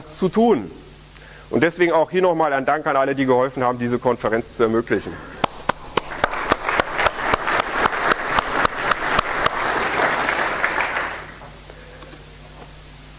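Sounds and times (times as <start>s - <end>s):
speech: 0.0s - 0.8s, 1.5s - 5.3s
audience clapping: 5.3s - 11.6s.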